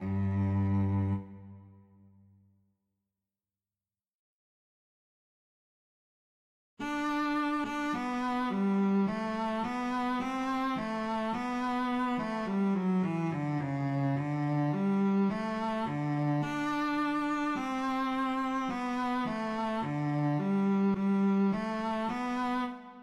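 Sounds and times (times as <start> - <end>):
violoncello: 0.0 - 2.2, 6.8 - 23.0.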